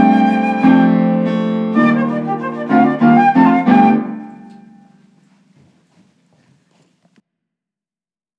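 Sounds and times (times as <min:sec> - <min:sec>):
flute playing a jig: 0:00.0 - 0:05.0
harp playing a jig: 0:00.0 - 0:05.0.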